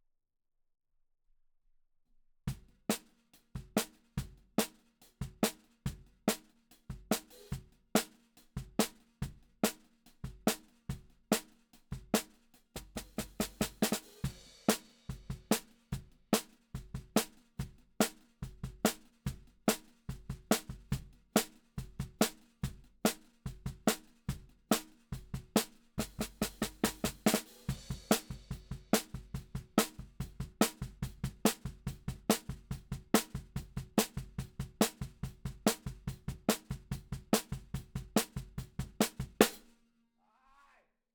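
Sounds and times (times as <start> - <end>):
snare drum: 2.9 - 39.7.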